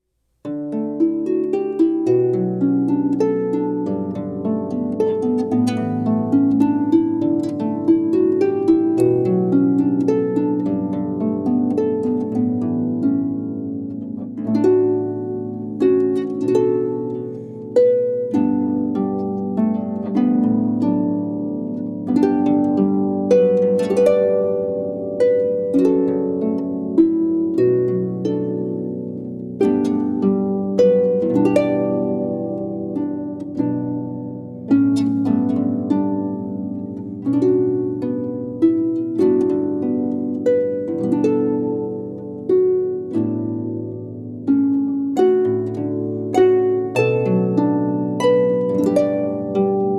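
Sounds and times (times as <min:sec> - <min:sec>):
harp: 0:00.0 - 0:49.9.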